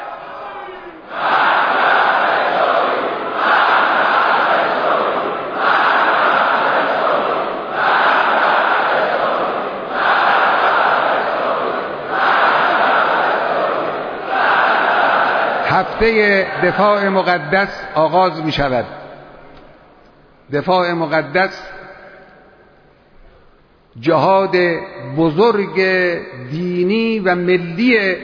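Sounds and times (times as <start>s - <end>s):
huge crowd chanting slogans loudly in unison: 0.0s - 15.7s
speech: 16.0s - 19.0s, 20.5s - 21.7s, 24.0s - 28.2s.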